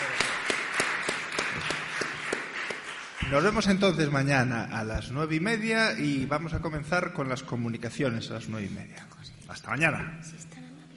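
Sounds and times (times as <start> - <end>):
audience applause for speaker: 0.0 - 3.9
speech: 3.3 - 10.6.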